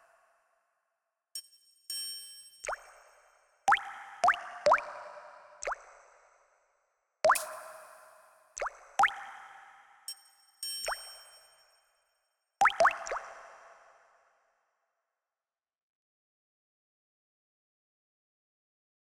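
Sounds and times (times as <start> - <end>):
water drops with reverb: 2.6 - 3.0, 3.7 - 5.9, 7.2 - 11.5, 12.6 - 13.6
triangle with reverb: 10.1 - 12.0.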